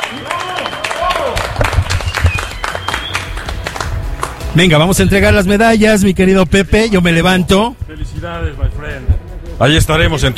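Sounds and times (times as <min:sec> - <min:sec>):
applause for the competitors: 0:00.0 - 0:04.5
speech: 0:04.6 - 0:10.3.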